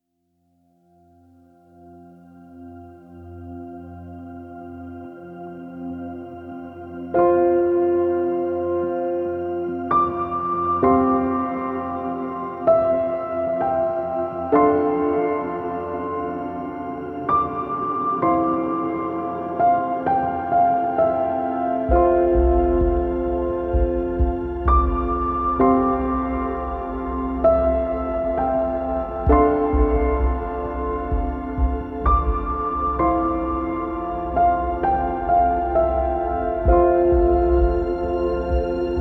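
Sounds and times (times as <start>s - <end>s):
sentimental piano: 1.1s - 39.0s.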